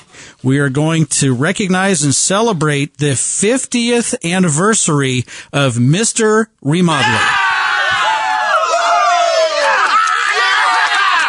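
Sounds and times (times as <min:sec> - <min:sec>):
speech: 0:00.4 - 0:07.6
crowd cheering and whooping: 0:07.0 - 0:11.2.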